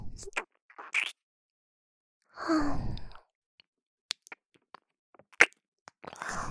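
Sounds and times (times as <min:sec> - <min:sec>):
ear nibbling sounds: 0:00.2 - 0:01.1, 0:04.1 - 0:06.3.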